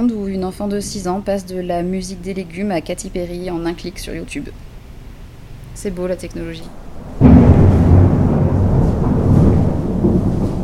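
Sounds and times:
speech: 0.0 - 4.7, 5.8 - 6.8
rain: 6.7 - 10.6.

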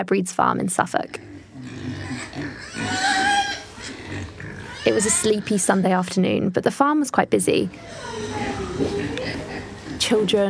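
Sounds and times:
speech: 0.0 - 1.3, 4.8 - 9.3, 10.0 - 10.4
pig grunting and snuffling at a farm: 1.1 - 6.0, 7.7 - 10.4.

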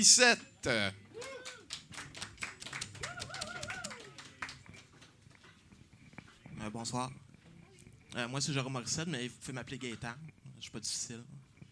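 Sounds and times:
speech: 0.0 - 1.3, 6.6 - 7.2, 8.1 - 11.5
applause: 1.1 - 5.2.

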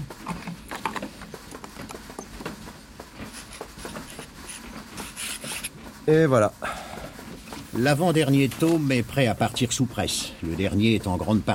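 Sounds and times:
quill pen signing a document: 3.2 - 5.8
speech: 6.1 - 6.7, 7.8 - 11.5.

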